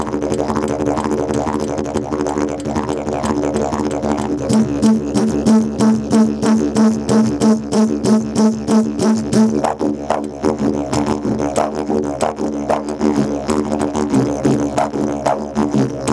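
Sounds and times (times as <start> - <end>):
didgeridoo solo: 0.0 - 16.1.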